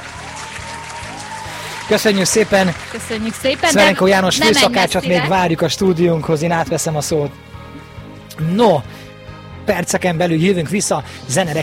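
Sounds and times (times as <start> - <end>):
studio audience applause after a cooking segment: 0.0 - 5.4
speech: 1.9 - 7.6, 8.4 - 9.0, 9.7 - 11.6.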